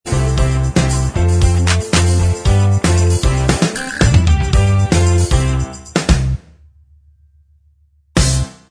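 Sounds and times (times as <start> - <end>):
instrumental backing track: 0.1 - 6.5.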